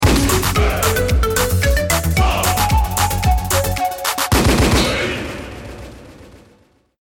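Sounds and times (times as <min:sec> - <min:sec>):
round MVP anthem music: 0:00.0 - 0:04.4.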